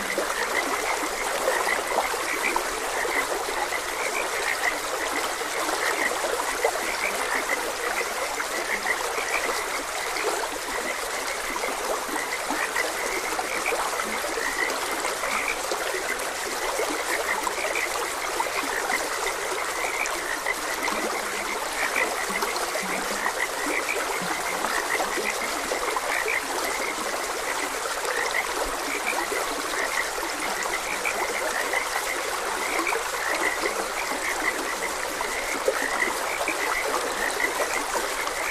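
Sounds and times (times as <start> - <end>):
frog chorus: 0.0 - 38.4
stream water babbling: 0.0 - 38.4.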